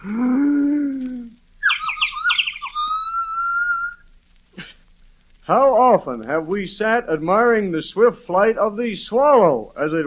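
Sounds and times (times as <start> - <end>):
speech: 0.0 - 0.4, 5.5 - 10.0
loon calling to its mate: 0.0 - 4.7.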